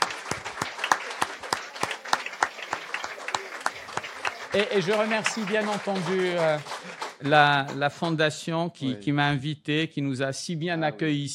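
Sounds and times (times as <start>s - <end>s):
audience applause: 0.0s - 8.3s
speech: 4.6s - 11.3s.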